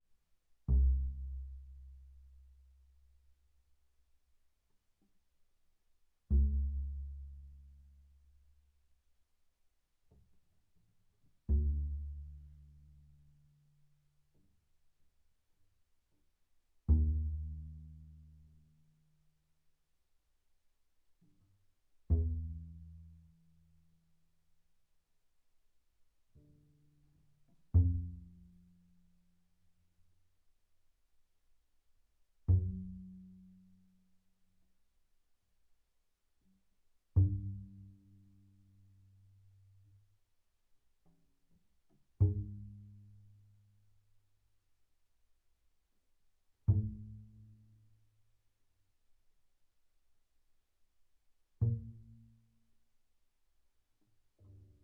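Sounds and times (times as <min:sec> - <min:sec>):
double bass pizzicato on the E string: 0:00.6 - 0:02.7, 0:06.2 - 0:08.4, 0:11.3 - 0:13.5, 0:16.8 - 0:18.8, 0:22.0 - 0:23.5, 0:26.3 - 0:29.3, 0:32.4 - 0:34.1, 0:37.1 - 0:39.8, 0:42.0 - 0:43.8, 0:46.6 - 0:47.7, 0:51.6 - 0:52.4.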